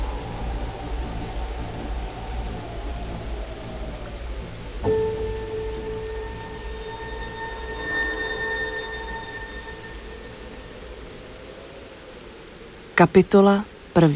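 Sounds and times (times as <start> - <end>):
light rain: 0.0 - 14.1
sustained ringing tone with bright overtones: 4.9 - 11.1
speech: 13.0 - 14.1.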